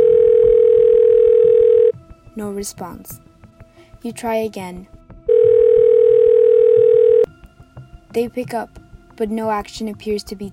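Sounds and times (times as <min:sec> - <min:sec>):
telephone line tone: 0:00.0 - 0:01.9, 0:05.3 - 0:07.3
speech: 0:02.6 - 0:03.3, 0:04.0 - 0:05.0, 0:08.1 - 0:10.5.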